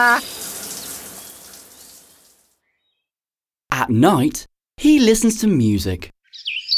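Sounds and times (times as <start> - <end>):
speech: 0.0 - 0.4, 3.8 - 6.5
shower water running: 0.0 - 2.4.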